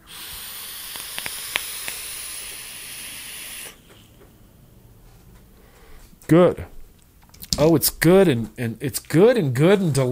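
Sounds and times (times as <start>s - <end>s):
vape coil sizzling during inhale: 0.0s - 4.2s
speech: 6.3s - 6.7s, 7.6s - 10.0s.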